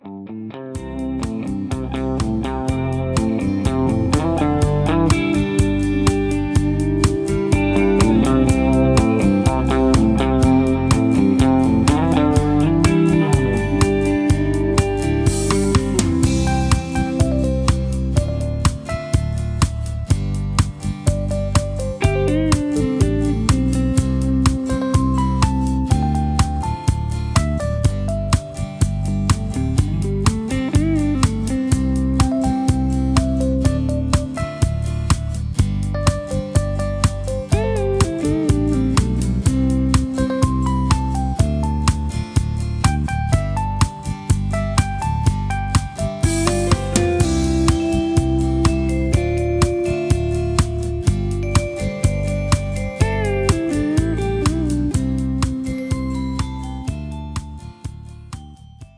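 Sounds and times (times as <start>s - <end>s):
instrumental melody: 0.8s - 58.9s.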